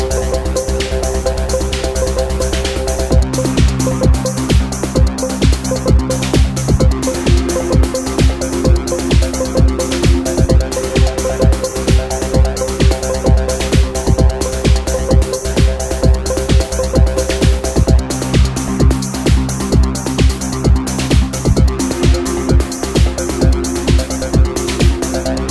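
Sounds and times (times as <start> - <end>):
dance drums: 0.0 - 25.4.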